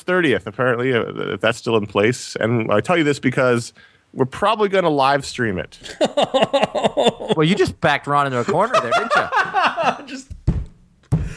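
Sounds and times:
speech: 0.0s - 10.4s
laughter: 5.8s - 7.6s, 8.3s - 10.3s
head knocking against a tabletop: 10.3s - 11.3s.

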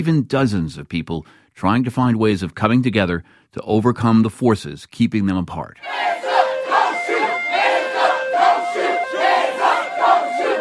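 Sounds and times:
speech: 0.0s - 6.3s
protest crowd chanting in Charlotte, North Carolina after a police shooting: 5.8s - 10.5s.

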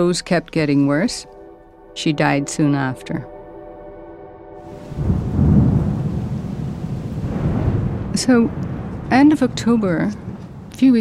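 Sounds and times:
speech: 0.0s - 1.4s, 2.0s - 3.3s, 8.2s - 10.2s, 10.8s - 10.9s
rain: 4.6s - 10.9s
thunder: 4.7s - 10.9s.

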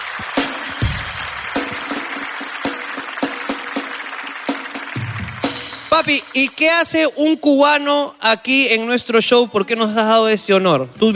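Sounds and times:
audience applause: 0.0s - 6.9s
speech: 0.2s - 0.8s, 6.0s - 11.1s.

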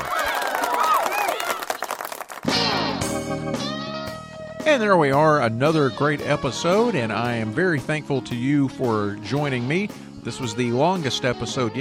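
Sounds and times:
cheering and whooping voices: 0.0s - 2.0s
canned applause sound effect from button: 0.0s - 2.8s
speech: 4.7s - 11.8s.

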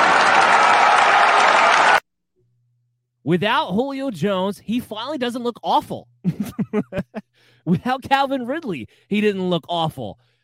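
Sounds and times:
applause sound effect: 0.0s - 2.0s
speech: 3.3s - 10.3s
laughter: 6.2s - 7.9s.

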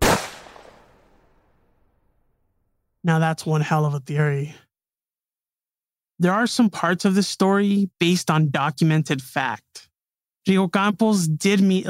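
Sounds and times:
gunshot sound effect: 0.0s - 1.5s
speech: 3.0s - 4.7s, 6.2s - 11.8s.

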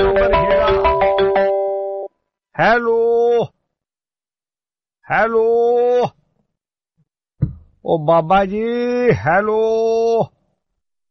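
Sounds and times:
electronic telephone ringing for a listener's call-in to a Punjabi radio request programme: 0.0s - 2.1s
speech: 2.6s - 3.6s, 5.1s - 6.2s, 7.9s - 10.3s.

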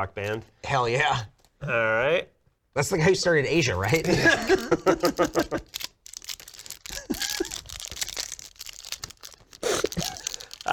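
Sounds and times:
speech: 0.0s - 5.9s
Game of Thrones trading card packs torn open, paper and foil crinkling: 3.8s - 10.7s.

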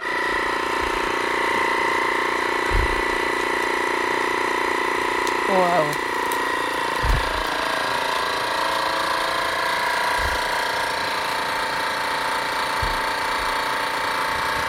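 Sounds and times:
vacuum sealer pumping out air: 0.0s - 14.6s
soft low thumps: 0.3s - 1.2s, 2.6s - 3.4s, 7.0s - 7.5s, 10.2s - 10.7s, 12.8s - 13.6s
speech: 5.6s - 6.0s.

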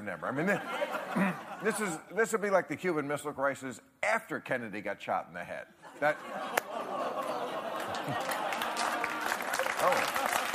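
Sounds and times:
speech: 0.1s - 7.2s, 8.0s - 8.4s, 9.8s - 10.2s
laughter: 0.4s - 2.0s, 5.8s - 10.5s
audience clapping: 6.5s - 10.5s.

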